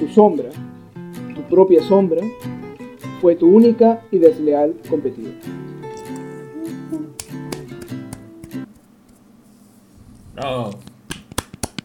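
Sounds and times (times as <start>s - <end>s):
speech: 0.0s - 0.7s, 1.5s - 2.5s, 3.2s - 5.6s, 10.4s - 10.9s
sustained tonal background: 0.9s - 9.4s
hand clapping: 6.0s - 8.9s, 11.1s - 11.8s.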